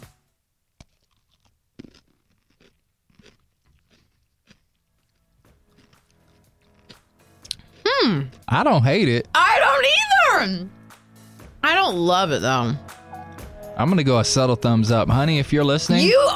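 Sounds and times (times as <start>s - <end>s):
dill pickle topped with ice cream bitten and chewed: 0.8s - 8.5s
speech: 8.5s - 9.4s, 10.4s - 10.8s, 11.9s - 12.9s, 13.8s - 16.3s.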